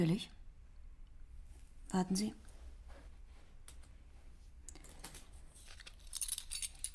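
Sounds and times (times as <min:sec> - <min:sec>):
speech: 0:00.0 - 0:00.4, 0:01.9 - 0:02.4
keys for security doors jingling as they are handed over: 0:05.6 - 0:06.9.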